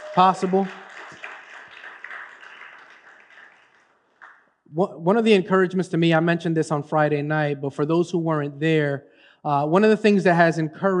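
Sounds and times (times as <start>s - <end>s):
crowd applauding: 0.0s - 4.5s
speech: 0.2s - 0.8s, 4.8s - 10.9s.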